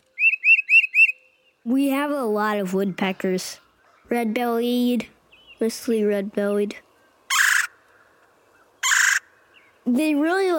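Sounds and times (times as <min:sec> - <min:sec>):
Tufted Titmouse song: 0:00.0 - 0:01.7
speech: 0:01.6 - 0:06.8, 0:09.9 - 0:10.5.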